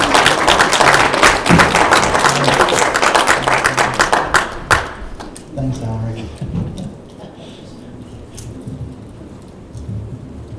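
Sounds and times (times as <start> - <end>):
crowd clapping: 0.0 - 5.6.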